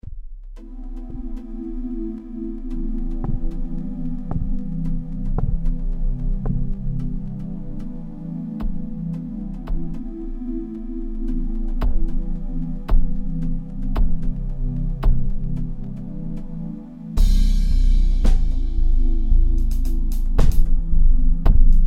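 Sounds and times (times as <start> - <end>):
groove beat: 0.0 - 8.0, 10.9 - 16.4, 17.2 - 21.8.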